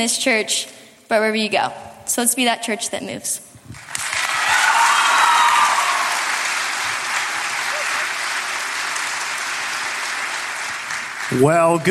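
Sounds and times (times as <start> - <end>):
speech: 0.0 - 3.8, 11.3 - 11.8
audience applause: 3.8 - 11.8.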